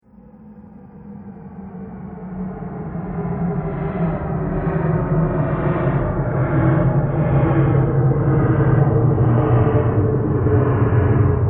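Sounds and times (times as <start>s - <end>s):
spaceship landing engines: 2.6s - 11.4s.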